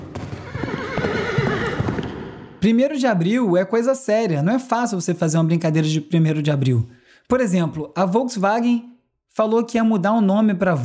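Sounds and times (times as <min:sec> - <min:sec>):
galloping hooves: 0:00.0 - 0:02.3
horse neighing: 0:00.4 - 0:02.5
speech: 0:02.6 - 0:10.8.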